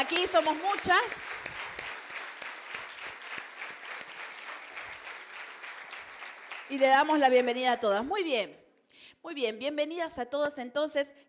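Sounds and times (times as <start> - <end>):
speech: 0.0 - 1.4, 6.7 - 8.6, 9.2 - 11.2
audience applause: 0.0 - 7.3.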